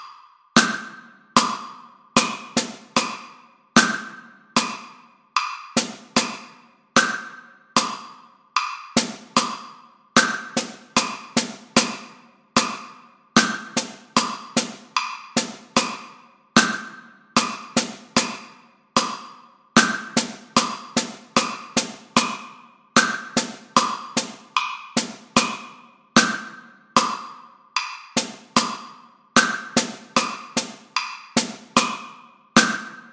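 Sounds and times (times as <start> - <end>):
drum set: 0.6 - 33.0.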